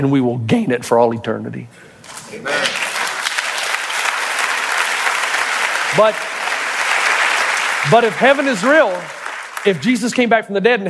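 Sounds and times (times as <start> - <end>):
speech: 0.0 - 2.7, 6.0 - 6.3, 7.8 - 10.8
audience applause: 2.5 - 10.2.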